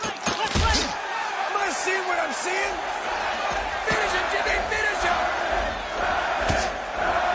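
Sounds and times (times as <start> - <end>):
rowdy crowd: 0.0 - 7.3
shouting voices: 0.0 - 7.3
flurry of punches in a boxing ring fight: 2.8 - 7.3.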